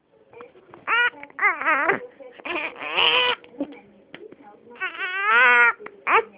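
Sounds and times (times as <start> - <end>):
hungry baby girl crying: 0.9 - 3.4, 4.8 - 6.3.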